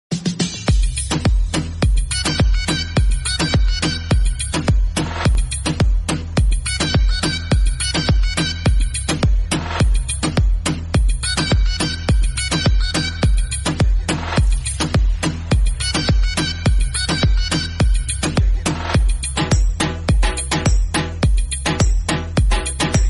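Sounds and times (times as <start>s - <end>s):
instrumental ringtone background music: 0.7s - 23.0s.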